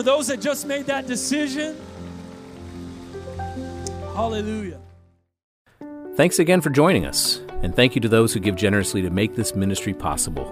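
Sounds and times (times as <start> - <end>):
speech: 0.0 - 2.1, 4.2 - 4.8, 6.2 - 10.4
audience clapping hands: 0.0 - 4.9.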